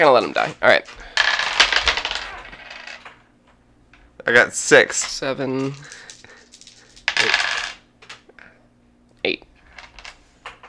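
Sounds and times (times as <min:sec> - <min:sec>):
speech: 0:00.0 - 0:01.1, 0:04.2 - 0:06.0, 0:07.2 - 0:07.5, 0:09.2 - 0:09.5
dice clattering across a hard tabletop: 0:01.2 - 0:03.2, 0:05.0 - 0:08.2.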